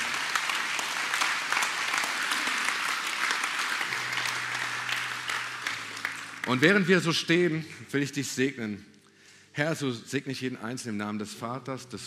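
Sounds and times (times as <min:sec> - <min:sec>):
audience applause: 0:00.0 - 0:07.9
speech: 0:06.5 - 0:08.9, 0:09.6 - 0:12.0.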